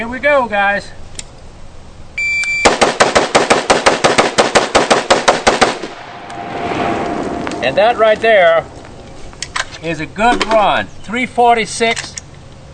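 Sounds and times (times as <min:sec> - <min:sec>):
speech: 0:00.0 - 0:01.0, 0:07.6 - 0:08.8, 0:09.8 - 0:12.2
shot-timer beep: 0:02.2 - 0:02.7
rapid AR-15 rifle gunfire: 0:02.7 - 0:05.9.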